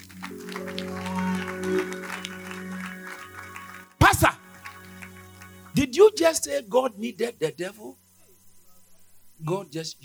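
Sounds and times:
audience applauding: 0.0s - 5.9s
organ or keyboard chords: 0.0s - 8.0s
speech: 6.2s - 8.0s, 9.5s - 10.0s.

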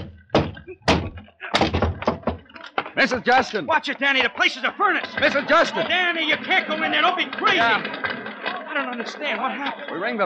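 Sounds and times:
locked door being kicked in: 0.0s - 3.0s
speech: 3.0s - 8.1s, 8.8s - 10.2s
laughter: 3.2s - 10.2s.

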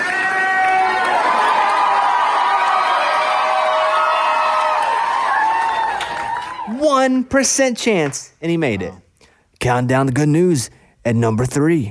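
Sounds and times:
hospital staff cheering: 0.0s - 7.2s
speech: 7.1s - 9.0s, 9.6s - 11.8s.

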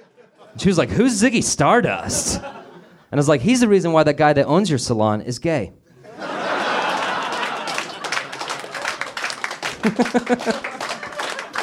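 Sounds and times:
audience roaring with laughter: 0.0s - 0.8s, 1.8s - 3.1s, 5.9s - 11.6s
speech: 0.6s - 5.8s, 9.8s - 10.8s
crowd whooping: 6.1s - 11.6s
audience clapping: 6.4s - 11.6s.

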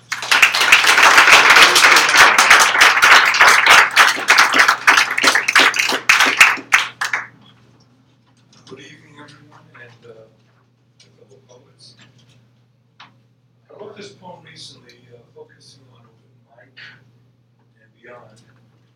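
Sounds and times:
audience applause at a comedy show: 0.0s - 7.3s.

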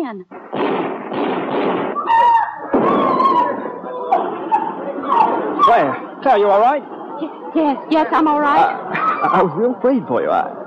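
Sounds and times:
speech: 0.0s - 1.9s, 5.7s - 10.6s
gunshot in a radio drama: 0.3s - 3.6s.

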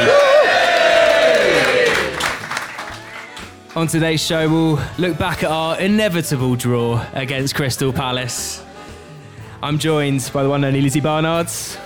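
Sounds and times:
person whooping: 0.0s - 1.7s
live pub audience cheering and clapping at the Half Moon in Putney: 0.0s - 3.8s
speech: 3.8s - 8.7s, 9.6s - 11.8s.

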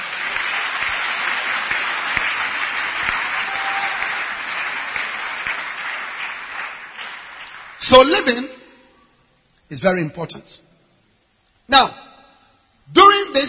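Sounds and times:
audience clapping hands: 0.0s - 8.5s
speech: 7.9s - 8.6s, 9.7s - 10.7s, 11.7s - 12.0s, 12.9s - 13.4s.

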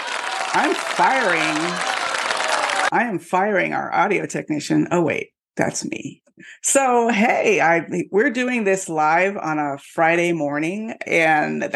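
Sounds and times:
applause sound effect: 0.0s - 2.9s
speech: 0.6s - 2.0s, 2.9s - 11.7s.

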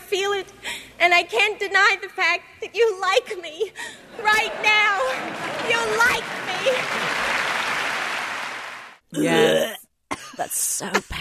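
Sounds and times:
speech: 0.1s - 7.4s, 9.1s - 9.8s, 10.4s - 11.1s
laughter: 3.8s - 8.2s
audience applause in played clip: 4.0s - 9.0s.

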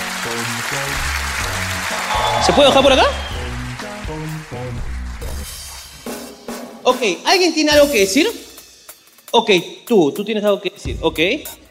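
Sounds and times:
audience applause: 0.0s - 5.8s
speech: 0.2s - 3.3s, 6.9s - 8.4s, 9.3s - 11.6s.

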